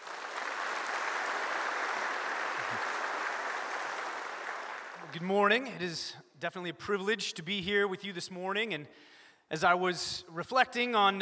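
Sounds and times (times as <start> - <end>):
congregation applause at a church service: 0.0 - 5.6
speech: 5.1 - 11.2.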